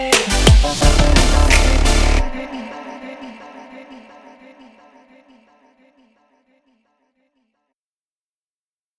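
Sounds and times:
upbeat inspiring future bass music: 0:00.0 - 0:02.5.

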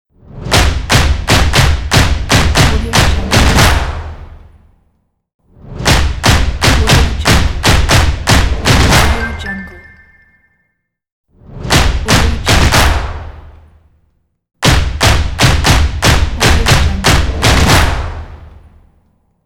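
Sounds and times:
dynamic stomp logo beat: 0:00.5 - 0:04.4, 0:05.8 - 0:09.8, 0:11.8 - 0:13.4, 0:14.6 - 0:18.7.

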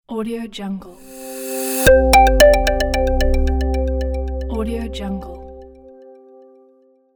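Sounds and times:
minimal logo sound: 0:01.0 - 0:06.0.

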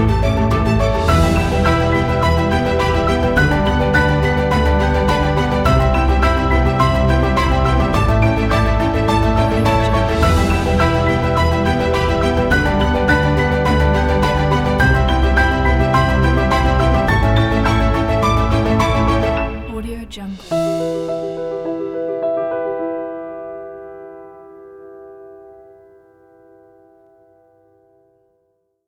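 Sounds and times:
emotional piano: 0:00.0 - 0:28.4.

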